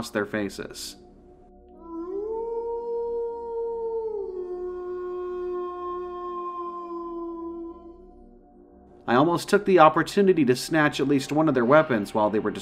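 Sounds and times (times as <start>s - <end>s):
speech: 0.0s - 1.0s, 9.1s - 12.6s
gnarled howl: 1.7s - 8.4s.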